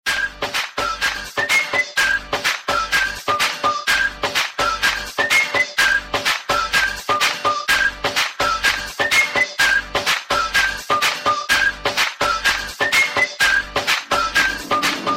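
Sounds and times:
cute instrumental music: 0.0 - 15.1.

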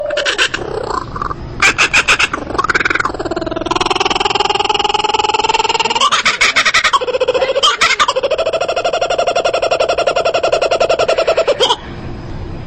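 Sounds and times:
kingfisher calling: 0.0 - 11.9.

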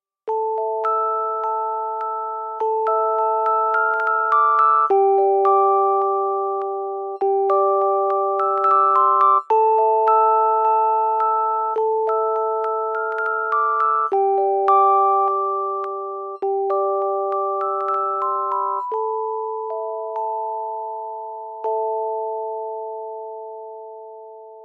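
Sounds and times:
music box: 0.3 - 24.6.

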